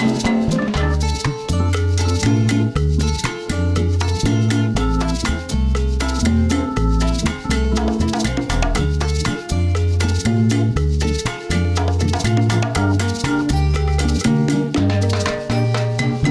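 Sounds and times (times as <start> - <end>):
music in D minor: 0.0 - 16.2.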